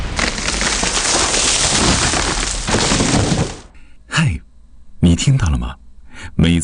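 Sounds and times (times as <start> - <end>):
large tree falling and crashing down: 0.0 - 3.8
speech: 5.0 - 5.8, 6.4 - 6.6.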